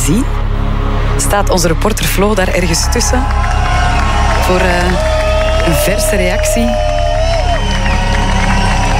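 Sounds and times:
speech: 0.0s - 0.4s, 1.2s - 6.9s
large concert crowd applause and cheering: 2.6s - 8.9s
crowd whistles: 6.9s - 8.9s.

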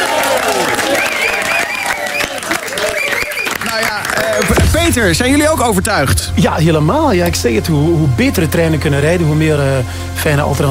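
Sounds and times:
audience applause: 0.0s - 4.6s
speech: 4.9s - 10.6s.

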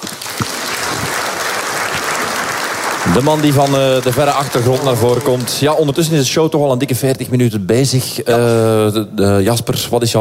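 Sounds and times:
crowd applause: 0.0s - 6.3s
speech: 3.1s - 10.1s.

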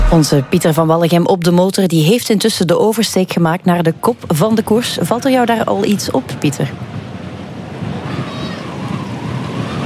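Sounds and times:
speech: 0.1s - 7.0s
strong wind blowing: 5.7s - 9.8s.

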